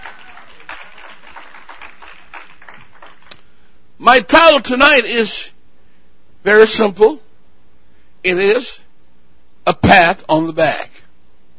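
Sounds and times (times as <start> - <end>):
crowd clapping: 0.0 - 3.4
speech: 4.0 - 5.5, 6.4 - 7.2, 8.2 - 8.8, 9.6 - 10.9.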